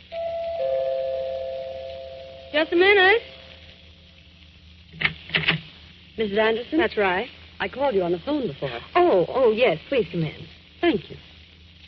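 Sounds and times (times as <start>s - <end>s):
front doorbell ringing: 0.1s - 3.0s
speech: 2.5s - 3.3s, 6.2s - 11.3s.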